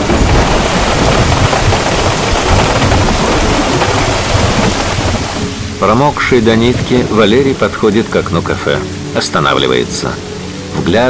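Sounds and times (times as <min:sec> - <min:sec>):
heavy rain drumming on tree leaves and a taxi roof at night: 0:00.0 - 0:11.0
speech: 0:05.8 - 0:11.0.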